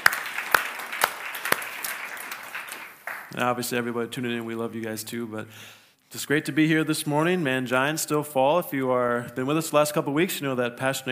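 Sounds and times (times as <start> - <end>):
audience applause: 0.0 - 3.3
speech: 3.3 - 11.0.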